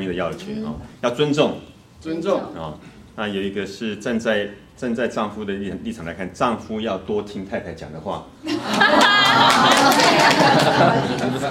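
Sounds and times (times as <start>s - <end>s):
speech: 0.0s - 11.4s
lively chatter and laughter: 8.5s - 11.4s
group applause: 8.6s - 11.4s.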